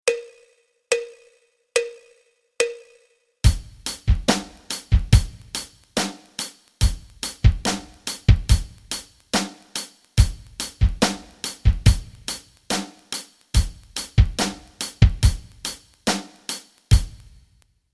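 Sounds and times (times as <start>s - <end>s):
rock rhythms: 3.4s - 17.5s.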